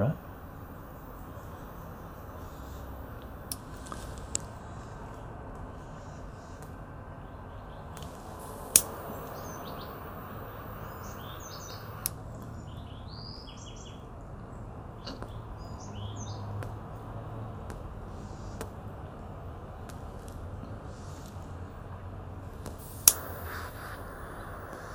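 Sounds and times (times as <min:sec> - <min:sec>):
hiss: 0:00.0 - 0:14.1, 0:15.0 - 0:24.9
20-year-old lighter clicking to light a Cuban Bolivar Belicoso Fino cigar: 0:02.4 - 0:04.5, 0:08.0 - 0:12.2, 0:22.6 - 0:24.9.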